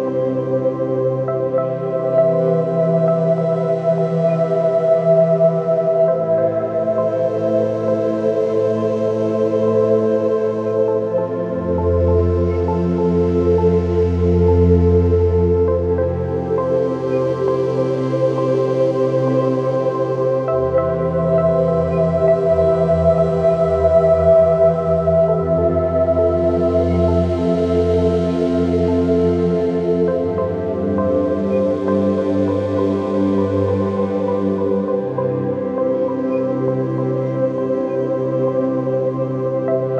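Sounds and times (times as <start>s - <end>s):
forest melody background music for meditation and yoga: 0.0s - 39.9s.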